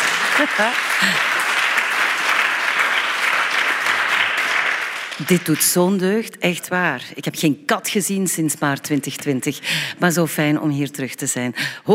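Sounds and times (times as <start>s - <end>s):
live crowd applauding: 0.0s - 5.8s
speech: 0.4s - 1.3s, 5.2s - 11.9s.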